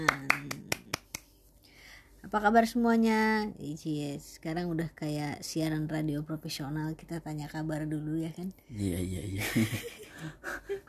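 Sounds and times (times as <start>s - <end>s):
hand clapping: 0.0s - 1.3s
speech: 2.3s - 10.8s
laughter: 9.3s - 10.8s.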